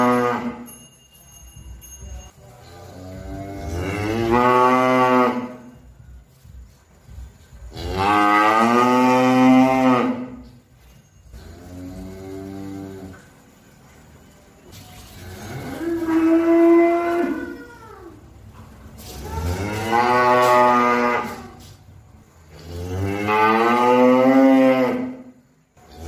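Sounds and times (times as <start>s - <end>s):
cow mooing: 0.0s - 0.7s, 2.8s - 5.7s, 7.7s - 10.4s, 15.2s - 17.6s, 19.3s - 21.6s, 22.5s - 25.3s.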